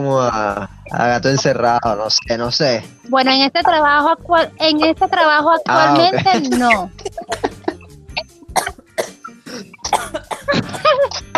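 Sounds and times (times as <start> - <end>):
speech: 0.0 - 7.1
laughter: 0.2 - 2.0, 5.6 - 7.9, 9.2 - 11.3
person coughing and choking: 5.7 - 11.3.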